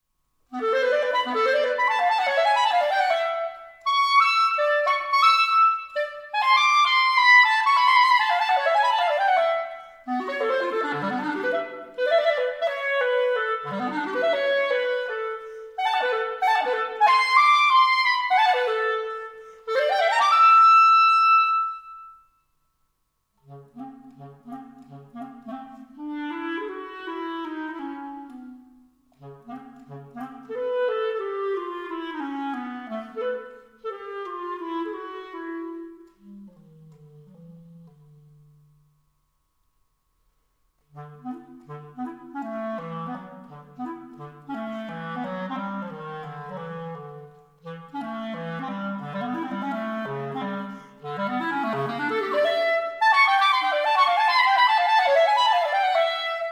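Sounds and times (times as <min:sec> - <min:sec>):
solo clarinet: 0:00.5 - 0:22.5, 0:23.4 - 0:38.9, 0:40.8 - 0:56.5.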